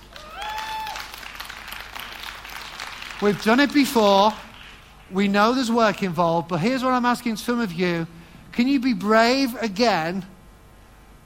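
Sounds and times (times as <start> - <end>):
audience clapping: 0.0 - 6.2
speech: 3.2 - 4.4, 5.1 - 10.3.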